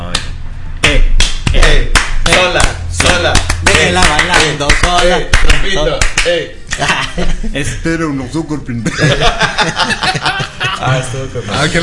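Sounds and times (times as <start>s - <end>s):
small group clapping hands: 0.1s - 6.9s
speech: 1.5s - 11.8s
laughter: 6.7s - 7.7s, 8.8s - 11.8s.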